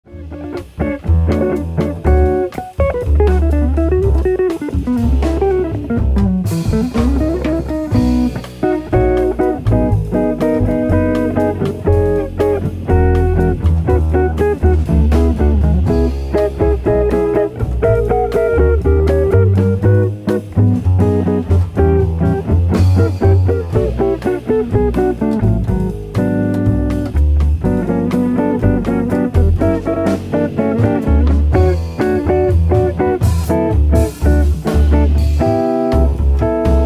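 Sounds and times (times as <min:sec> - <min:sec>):
bossa nova music: 0:00.1 - 0:36.8.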